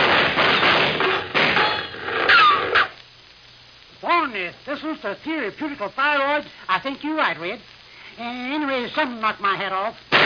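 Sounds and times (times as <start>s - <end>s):
gunshots: 0.0s - 2.9s
speech: 4.5s - 10.0s.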